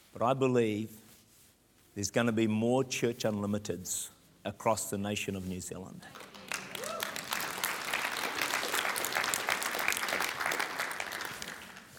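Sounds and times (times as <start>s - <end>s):
speech: 0.2s - 1.0s, 2.0s - 6.3s
crowd applause: 6.2s - 11.9s
brief cheer: 6.7s - 7.2s.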